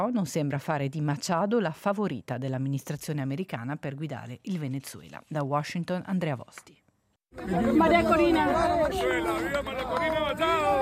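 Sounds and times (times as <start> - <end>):
speech: 0.0 - 10.8
small crowd of supporters chattering: 7.3 - 10.8.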